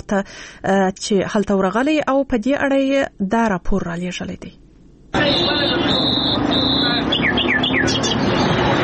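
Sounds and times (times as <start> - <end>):
speech: 0.1 - 6.7
wild nightingales, partridges and mynas whistling and chirping at a Kandahar bird market: 5.4 - 8.6.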